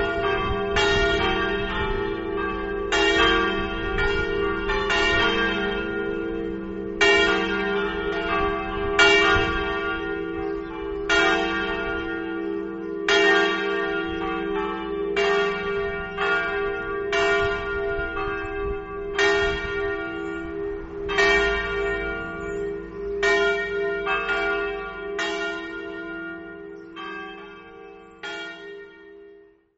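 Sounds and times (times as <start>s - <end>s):
bells ringing in Sanguarzo: 0.0s - 29.5s.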